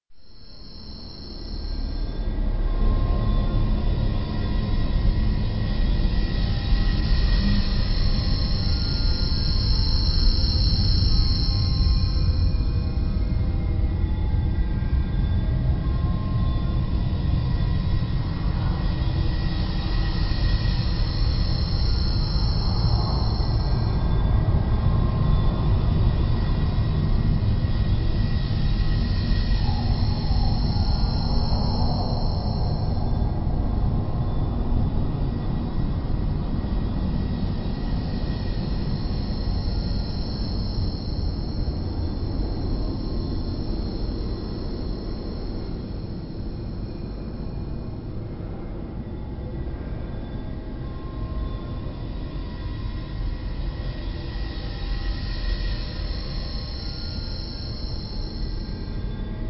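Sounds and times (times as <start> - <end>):
ambience: 0.2 - 59.4.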